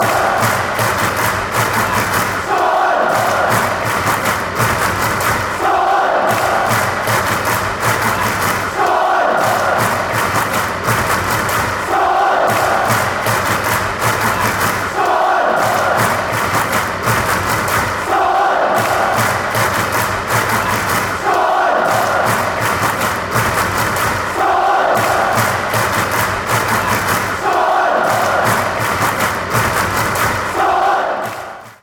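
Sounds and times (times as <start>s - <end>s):
clapping: 0.0s - 31.8s.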